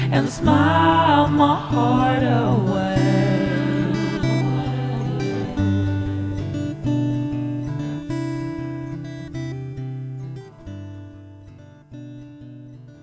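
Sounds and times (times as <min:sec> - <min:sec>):
folk song: 0:00.0 - 0:08.7.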